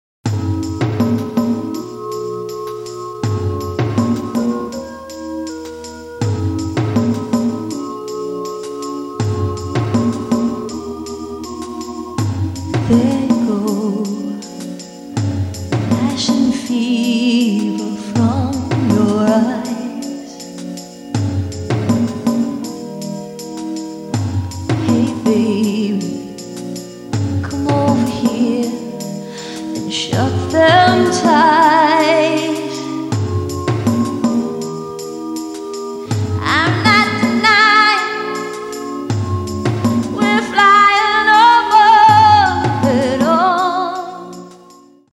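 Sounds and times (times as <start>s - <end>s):
acoustic music: 0.3s - 45.1s.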